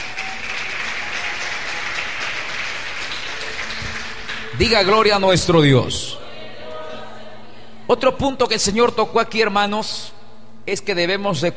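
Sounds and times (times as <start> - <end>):
crowd applauding: 0.0 - 5.8
speech: 4.6 - 6.2, 7.9 - 11.5.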